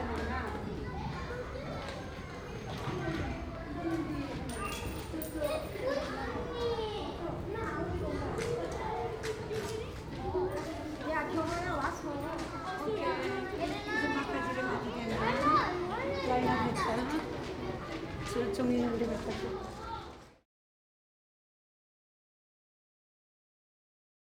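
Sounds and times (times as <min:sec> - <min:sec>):
elementary school children: 0:00.0 - 0:20.4.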